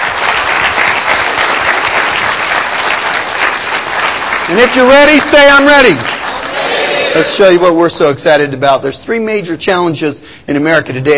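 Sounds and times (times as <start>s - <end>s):
audience applause: 0.0s - 7.6s
speech: 4.5s - 6.1s, 7.1s - 11.1s.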